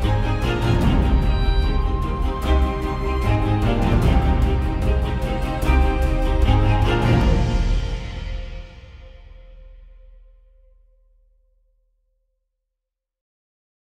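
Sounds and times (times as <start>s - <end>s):
suspense mystery music: 0.0s - 10.7s.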